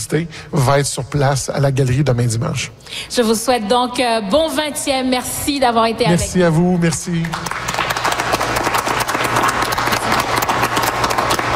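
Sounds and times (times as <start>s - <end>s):
speech: 0.0s - 7.8s
audience applause in the atrium of Radio-Canada in Toronto: 6.8s - 11.5s.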